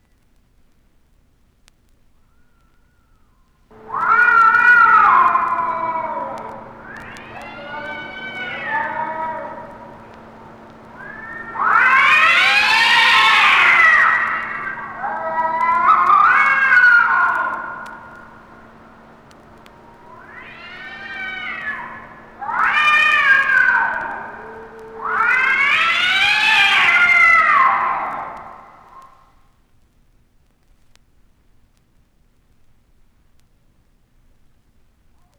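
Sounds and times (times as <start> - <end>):
cats shrieking: 3.7 - 29.2.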